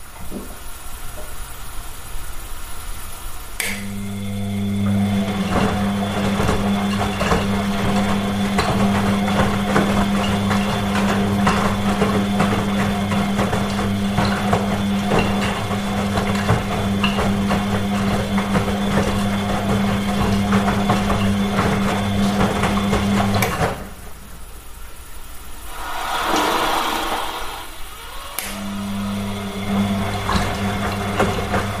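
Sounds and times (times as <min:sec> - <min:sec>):
washing machine motor hum and whirring drone: 0:00.0 - 0:31.7
washing machine drum sloshing: 0:05.2 - 0:23.4, 0:25.6 - 0:28.3.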